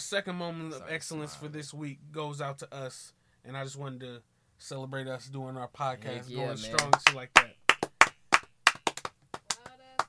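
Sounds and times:
speech: 0.0s - 7.6s
loud sharp hand claps in a small room: 6.7s - 10.0s.

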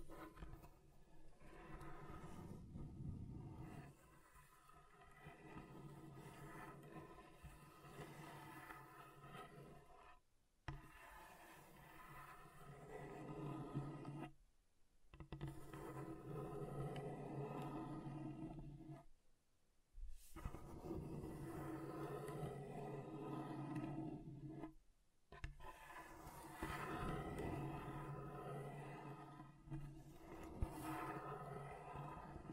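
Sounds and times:
table scratched in long grinding strokes: 0.0s - 14.3s, 15.1s - 19.0s, 20.1s - 32.5s.

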